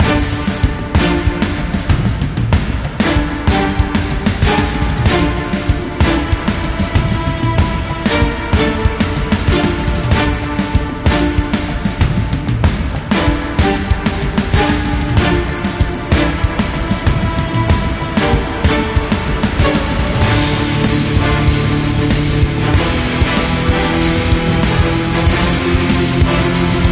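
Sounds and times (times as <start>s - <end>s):
epic orchestral action music: 0.0s - 26.9s.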